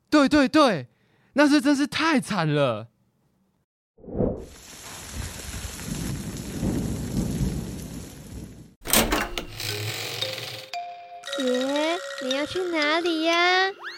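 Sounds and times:
speech: 0:00.2 - 0:02.9, 0:11.4 - 0:13.8
steady rain: 0:04.6 - 0:08.8
thunder rumbling and booming: 0:05.1 - 0:08.8.

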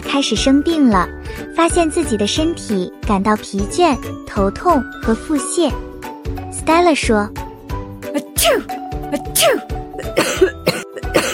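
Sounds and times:
speech: 0:00.1 - 0:07.4, 0:08.2 - 0:09.8
cough: 0:08.2 - 0:11.3.

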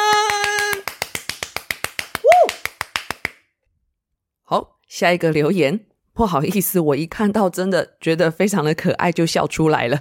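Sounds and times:
hand clapping: 0:00.0 - 0:03.5
speech: 0:04.5 - 0:09.9.

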